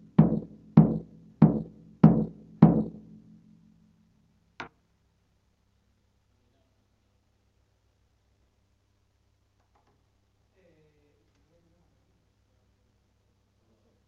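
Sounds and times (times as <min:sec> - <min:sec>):
bass drum: 0:00.0 - 0:03.0.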